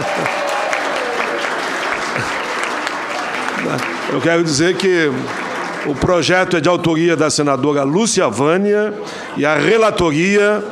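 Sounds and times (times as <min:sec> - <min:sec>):
audience clapping in a Brazilian Senate session: 0:00.0 - 0:07.1
speech: 0:03.6 - 0:10.7.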